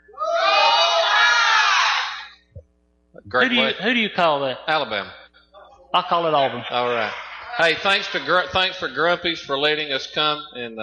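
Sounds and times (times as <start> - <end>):
crowd shouting a team cheer: 0.2 - 2.3, 6.6 - 8.6
laughter: 3.3 - 4.8, 6.0 - 10.2
speech: 3.3 - 5.2, 5.9 - 10.8.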